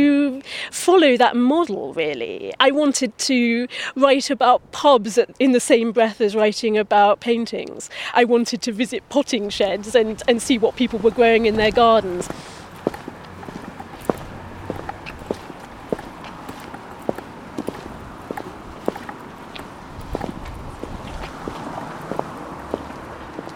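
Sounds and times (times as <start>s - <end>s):
speech: 0.0s - 12.6s
footsteps of people walking up a high street on hard ground: 11.0s - 23.5s.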